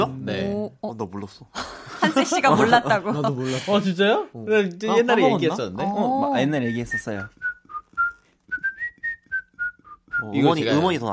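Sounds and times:
speech: 0.0 - 7.5, 10.2 - 11.1
laughter: 1.6 - 3.7, 5.0 - 6.5
whistled melody: 6.6 - 10.8.

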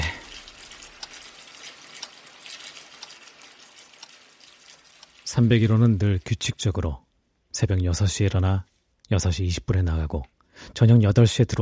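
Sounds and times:
tap water running while someone washes their face: 0.0 - 7.4
speech: 5.3 - 7.0, 7.6 - 11.5.

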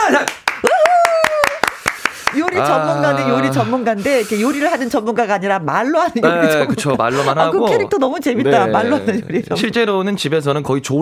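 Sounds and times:
clapping: 0.2 - 2.7
speech: 2.6 - 10.9
laughter: 6.1 - 9.7.

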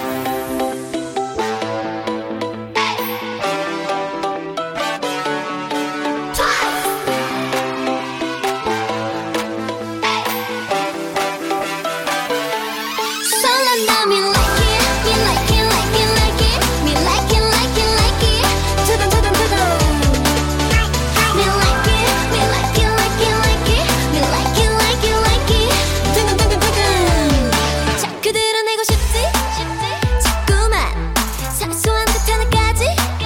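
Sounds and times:
K-pop girl group song: 0.0 - 12.5, 13.2 - 33.2.

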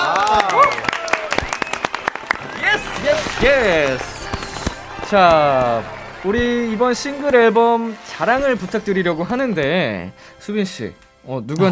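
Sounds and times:
voices cheering and shouting: 0.0 - 9.2
several people clapping: 0.0 - 9.7
speech: 3.4 - 4.1, 5.1 - 11.7.

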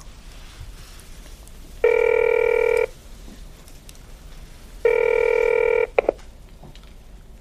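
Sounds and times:
phone ringing tones: 1.8 - 2.9, 4.9 - 6.1
phone button-press tones: 1.9 - 2.9.

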